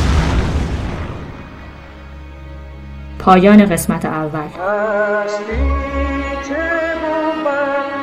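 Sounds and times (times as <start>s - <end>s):
heavy explosion on a road: 0.0s - 2.2s
speech: 3.2s - 7.9s.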